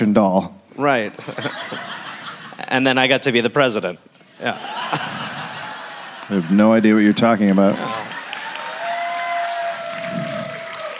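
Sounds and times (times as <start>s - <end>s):
speech: 0.0s - 2.0s, 2.6s - 5.2s, 6.3s - 8.1s
laughter: 1.1s - 2.8s, 4.3s - 8.7s
half-hearted partial audience applause: 6.9s - 10.9s.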